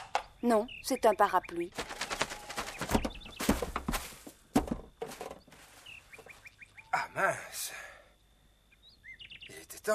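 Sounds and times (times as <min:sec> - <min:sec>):
speech: 0:00.4 - 0:01.9
white horse's hooves galloping at night: 0:01.7 - 0:04.7.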